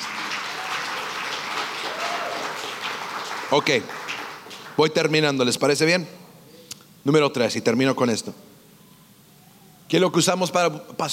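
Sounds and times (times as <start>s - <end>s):
audience applauding: 0.0s - 5.1s
speech: 3.5s - 4.0s, 4.8s - 6.2s, 7.0s - 8.5s, 9.9s - 11.1s.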